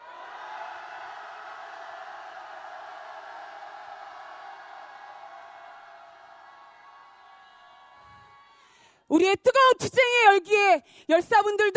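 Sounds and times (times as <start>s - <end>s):
crowd shouting a victory cheer: 0.0s - 8.7s
speech: 9.1s - 11.7s.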